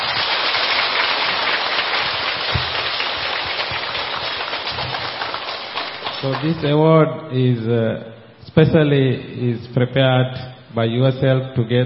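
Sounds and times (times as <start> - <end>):
audience applause: 0.0 - 6.7
speech: 6.2 - 11.8.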